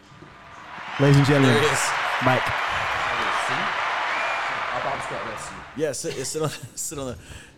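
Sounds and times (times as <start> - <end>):
applause: 0.0 - 6.4
speech: 1.0 - 2.9, 4.8 - 7.5.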